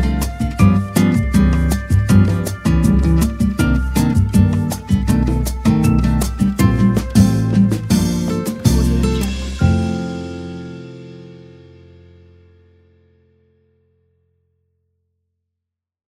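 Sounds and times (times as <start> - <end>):
elevator music: 0.0 - 11.7.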